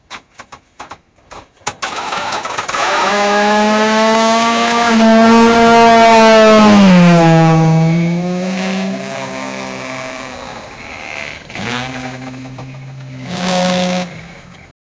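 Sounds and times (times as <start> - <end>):
car engine: 1.8 - 14.7.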